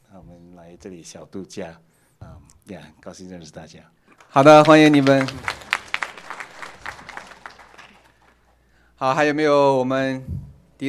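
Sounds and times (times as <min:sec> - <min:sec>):
speech: 0:00.7 - 0:05.6, 0:09.0 - 0:10.8
crowd applause welcoming newcomers: 0:04.2 - 0:08.5.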